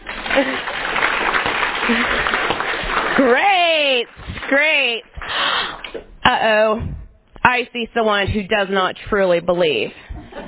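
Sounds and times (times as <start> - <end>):
audience clapping hands: 0.0 - 6.0
speech: 0.4 - 0.8, 1.9 - 2.2, 3.2 - 3.4, 4.0 - 5.4, 6.3 - 10.1.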